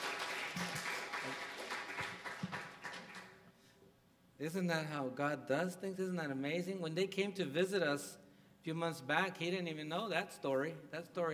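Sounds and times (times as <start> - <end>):
audience clapping: 0.0 - 3.4
speech: 4.4 - 11.3.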